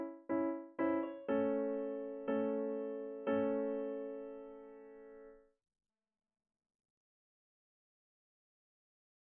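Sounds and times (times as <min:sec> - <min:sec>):
art song for voice and piano: 0:00.0 - 0:05.4.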